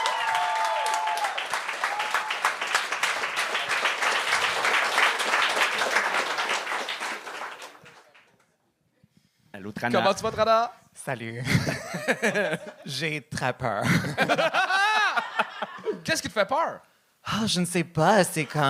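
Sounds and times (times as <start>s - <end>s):
audience applause: 0.0s - 8.3s
speech: 9.7s - 14.8s, 16.0s - 18.6s
laughter: 11.4s - 12.9s, 13.8s - 16.0s.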